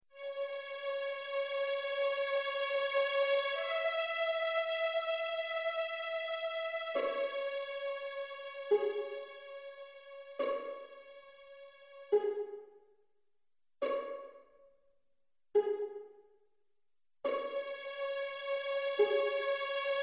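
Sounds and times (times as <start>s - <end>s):
orchestral music: 0.2s - 12.6s, 17.3s - 20.0s.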